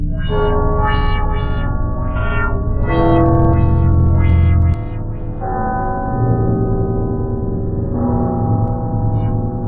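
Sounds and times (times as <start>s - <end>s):
Big Ben clock tower bell: 0.2s - 9.6s.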